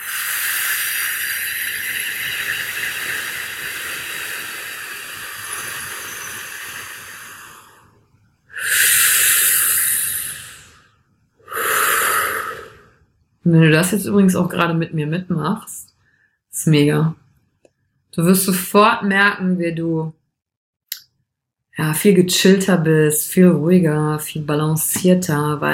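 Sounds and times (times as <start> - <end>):
deep slow breathing: 0.0 - 13.1
speech: 13.5 - 15.8, 16.6 - 17.2, 18.2 - 20.2, 21.8 - 25.7.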